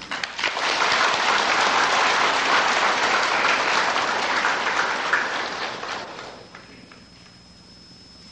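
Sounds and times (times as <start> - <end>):
audience applause: 0.0 - 6.6.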